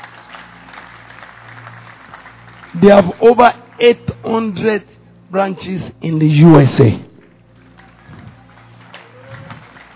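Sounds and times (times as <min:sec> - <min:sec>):
audience clapping: 0:00.0 - 0:04.4, 0:07.2 - 0:09.9
speech: 0:02.7 - 0:07.0.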